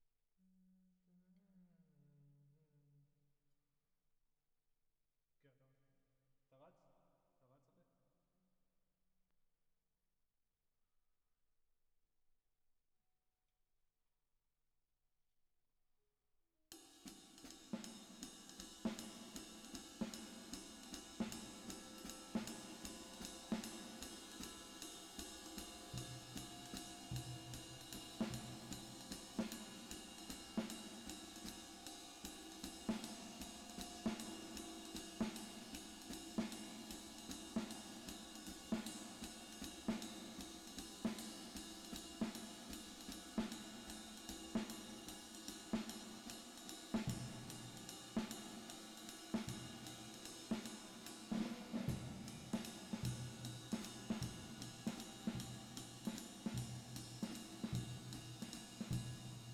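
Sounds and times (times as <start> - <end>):
drums with reverb: 16.8 - 59.5.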